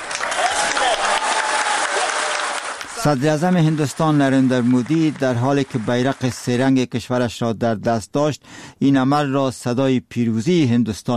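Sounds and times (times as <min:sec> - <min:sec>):
crowd applauding: 0:00.0 - 0:06.7
speech: 0:03.0 - 0:11.1.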